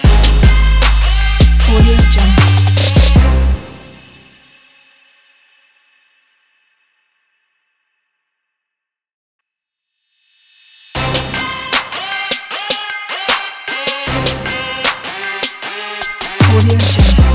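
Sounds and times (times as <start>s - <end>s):
hip hop trap sport logo music: 0.0s - 4.2s, 10.6s - 17.3s.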